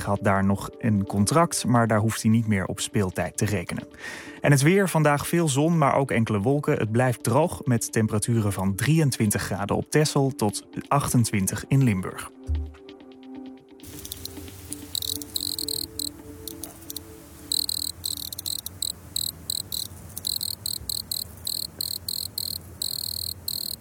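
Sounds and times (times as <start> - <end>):
speech: 0.0 - 12.7
wood cricket chirping: 13.8 - 23.7.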